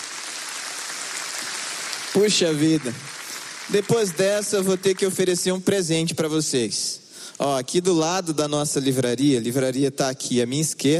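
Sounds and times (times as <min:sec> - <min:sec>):
audience applause: 0:00.0 - 0:05.4
speech: 0:02.2 - 0:10.9.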